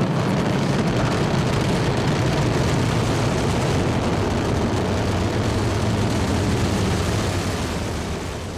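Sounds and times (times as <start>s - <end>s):
Ariane 5 rocket lifting off the pad at Kourou: 0.0s - 8.5s.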